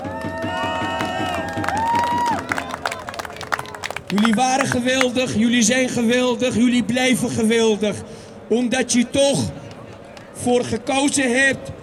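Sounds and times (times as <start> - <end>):
crowd cheering and clapping at a weekly protest march for Gaza: 0.0 - 5.8, 9.3 - 10.8
speech: 4.1 - 9.6, 10.4 - 11.7.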